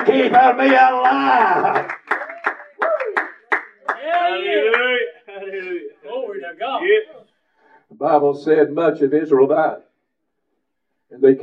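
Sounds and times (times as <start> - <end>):
speech: 0.0 - 2.0, 8.0 - 9.9, 11.1 - 11.4
hand clapping: 0.0 - 4.9.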